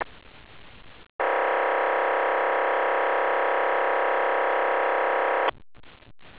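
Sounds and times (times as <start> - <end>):
VHF radio transmission: 1.2 - 5.5.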